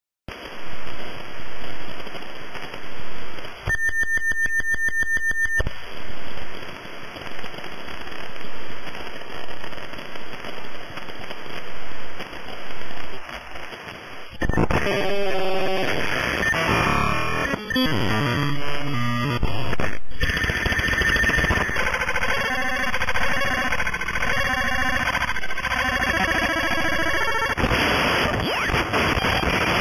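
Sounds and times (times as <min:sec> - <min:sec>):
signal sound: 0:03.7 - 0:05.7, 0:14.4 - 0:29.7.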